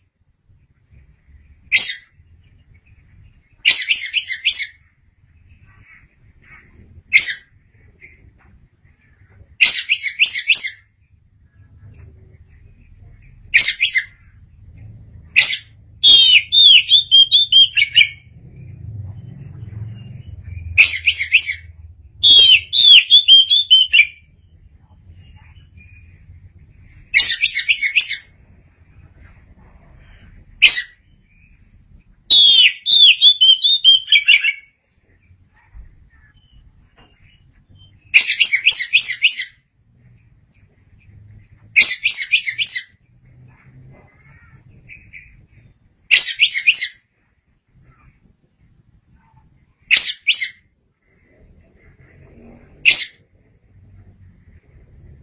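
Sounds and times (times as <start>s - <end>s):
low background hum: 0.0s - 55.2s
Oriental magpie-robin whistled song: 0.9s - 28.4s, 29.8s - 35.4s, 36.1s - 39.6s, 41.8s - 43.0s, 44.8s - 47.1s, 49.8s - 53.2s.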